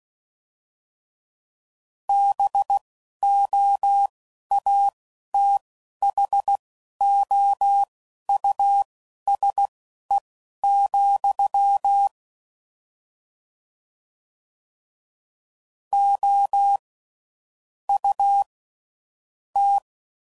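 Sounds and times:
ham radio Morse code groups at ten words per minute: 2.1s - 12.1s, 16.0s - 16.8s, 19.6s - 19.8s.

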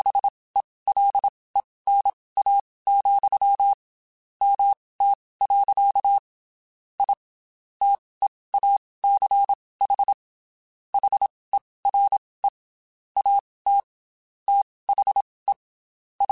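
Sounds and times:
Morse code CW code groups on ham radio: 0.0s - 0.3s, 0.9s - 1.3s, 1.9s - 3.8s, 4.4s - 6.2s, 7.0s - 7.2s, 7.8s - 10.2s, 11.0s - 12.6s, 13.2s - 13.9s, 14.5s - 15.6s, 16.2s - 16.3s.

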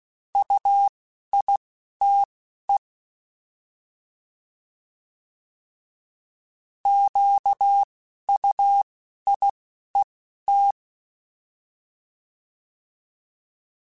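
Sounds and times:
Morse code CW code groups: 0.4s - 2.3s, 6.9s - 9.5s, 10.5s - 10.8s.

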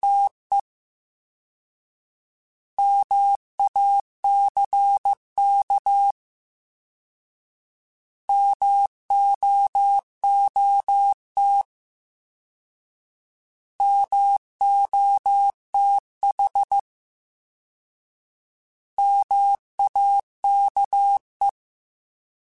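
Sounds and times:
Morse code CW code groups: 2.8s - 6.2s, 8.3s - 11.7s, 13.8s - 16.8s, 19.0s - 21.6s.

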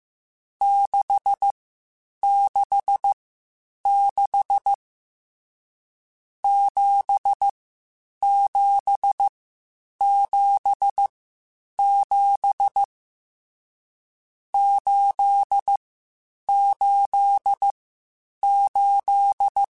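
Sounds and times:
Morse code CW code groups on ham radio: 0.6s - 1.5s, 2.2s - 3.1s, 3.9s - 4.8s, 6.5s - 7.5s, 8.2s - 9.3s, 10.0s - 11.1s, 11.8s - 12.9s, 14.5s - 15.8s, 16.5s - 17.7s, 18.4s - 19.7s.

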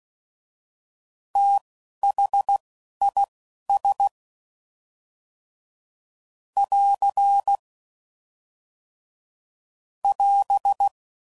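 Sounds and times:
Morse code CW code groups: 1.4s - 4.1s, 6.6s - 7.6s, 10.1s - 11.0s.

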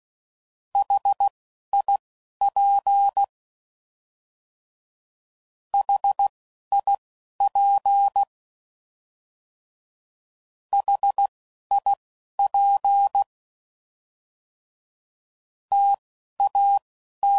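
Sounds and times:
Morse code CW code groups at 10 WPM: 0.8s - 3.3s, 5.8s - 8.3s, 10.8s - 13.3s, 15.7s - 17.3s.

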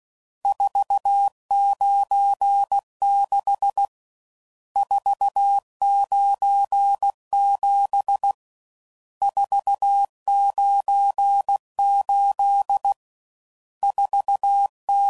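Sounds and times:
Morse code CW code groups at 15 WPM: 0.5s - 3.9s, 4.8s - 8.4s, 9.2s - 13.0s, 13.8s - 15.0s.

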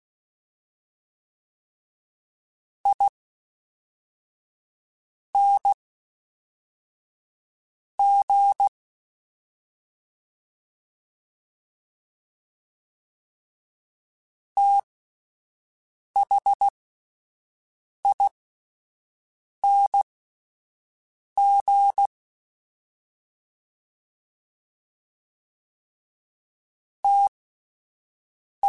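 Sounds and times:
fast CW Morse code groups: 5.4s - 5.8s, 8.0s - 8.7s, 16.2s - 16.7s, 18.1s - 18.3s, 19.6s - 20.0s, 21.4s - 22.1s, 27.1s - 27.3s.

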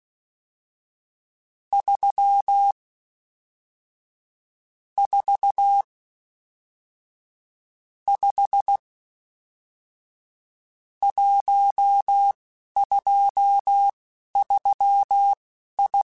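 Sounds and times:
Morse code CW code groups: 1.8s - 2.8s, 5.0s - 5.8s, 8.1s - 8.8s, 11.0s - 16.0s.

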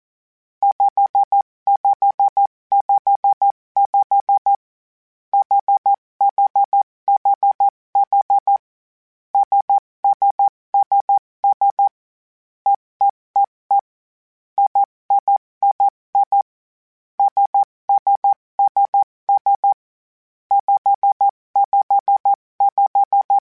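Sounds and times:
morse code groups: 0.6s - 4.6s, 5.4s - 8.6s, 9.4s - 12.0s, 14.6s - 16.5s, 17.2s - 19.8s, 20.5s - 23.4s.

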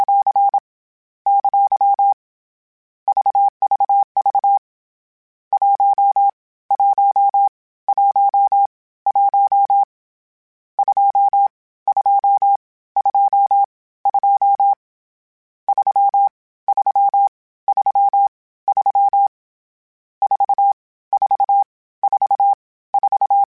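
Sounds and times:
Morse code CW code groups: 1.3s - 2.2s, 3.1s - 4.6s, 5.5s - 9.9s, 10.8s - 14.8s, 15.7s - 19.3s, 20.2s - 23.5s.

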